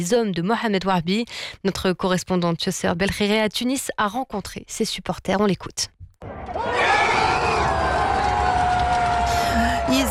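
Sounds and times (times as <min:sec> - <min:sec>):
speech: 0:00.0 - 0:07.0
packed café crowd cheering and whooping: 0:06.2 - 0:10.0.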